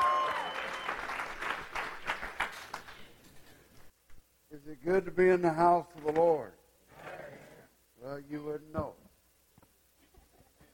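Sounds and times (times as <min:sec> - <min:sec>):
audience clapping: 0:00.0 - 0:03.2
speech: 0:04.7 - 0:06.6, 0:08.1 - 0:09.0.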